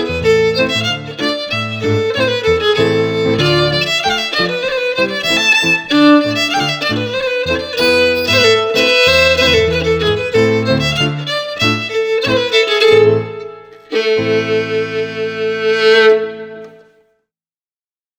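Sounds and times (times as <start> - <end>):
piano: 0.0 - 11.8
fiddles: 0.0 - 16.6.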